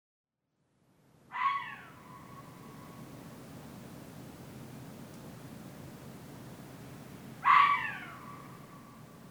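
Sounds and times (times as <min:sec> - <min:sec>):
Hokkaido red fox calling in Muroran: 0:01.3 - 0:03.1, 0:07.4 - 0:09.2.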